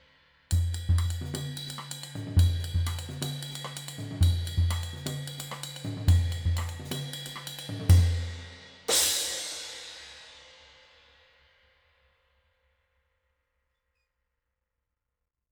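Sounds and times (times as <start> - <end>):
18 Agop Signature cymbal: 0.0 - 11.9.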